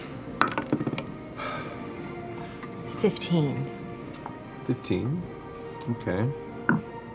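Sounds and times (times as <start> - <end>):
dice clinking as a player sorts through a rack: 0.4 - 1.1
speech: 3.0 - 3.8, 4.7 - 6.8.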